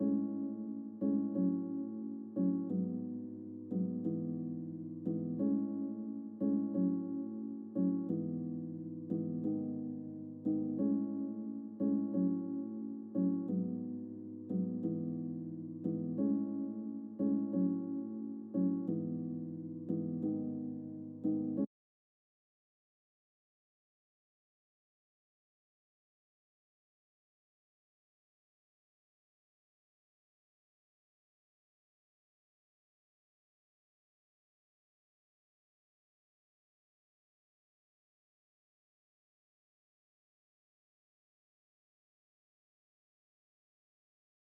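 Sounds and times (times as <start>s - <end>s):
piano: 0.0s - 21.7s.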